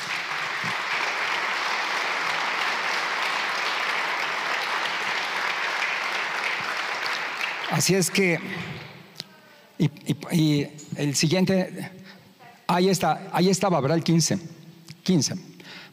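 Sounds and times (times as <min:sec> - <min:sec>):
audience applause ovation: 0:00.0 - 0:09.0
speech: 0:07.7 - 0:08.9, 0:09.8 - 0:12.0, 0:12.7 - 0:14.5, 0:15.1 - 0:15.8.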